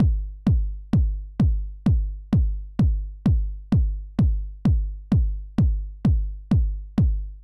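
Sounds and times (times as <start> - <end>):
kick drum: 0.0 - 7.4.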